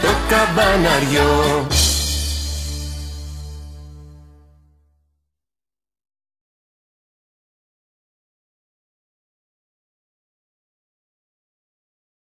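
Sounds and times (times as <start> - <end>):
Greek carol singing: 0.0 - 2.2.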